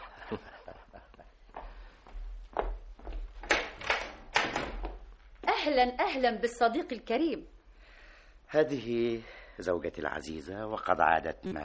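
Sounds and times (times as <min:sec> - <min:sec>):
speech: 0:00.3 - 0:00.5, 0:05.7 - 0:07.6, 0:08.5 - 0:11.6
man's soft shuffling footsteps: 0:01.2 - 0:03.4
door knocks, clunks and rattling latch as it swings open: 0:03.4 - 0:05.0.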